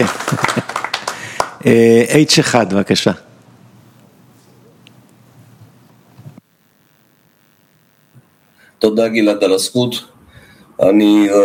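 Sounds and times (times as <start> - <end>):
speech: 0.0 - 0.5, 1.6 - 3.3, 8.8 - 10.1, 10.8 - 11.4
audience clapping: 0.0 - 1.6.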